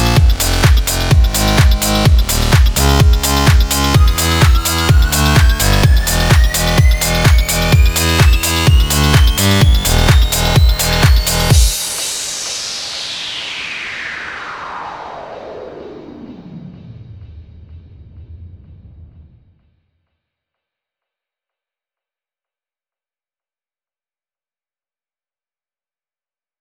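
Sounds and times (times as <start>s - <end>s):
electro music: 0.0s - 15.5s.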